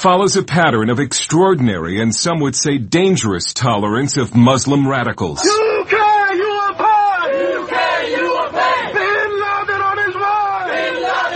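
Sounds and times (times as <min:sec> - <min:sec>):
speech: 0:00.0 - 0:06.0
crowd of protesters chanting: 0:05.4 - 0:11.3.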